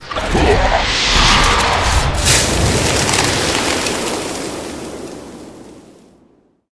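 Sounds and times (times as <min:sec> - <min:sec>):
beetle king monster death sound: 0:00.0 - 0:03.5.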